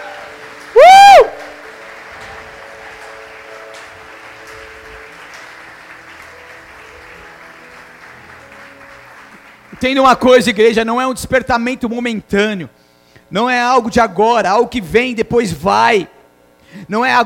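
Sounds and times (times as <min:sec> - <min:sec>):
audience applauding loudly: 0:00.0 - 0:10.6
speech: 0:09.8 - 0:16.1, 0:16.9 - 0:17.2.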